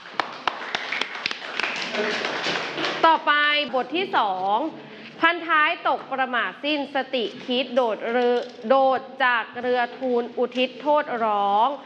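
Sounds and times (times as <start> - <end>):
classroom of students applauding: 0.0 - 3.1
speech: 3.0 - 11.8.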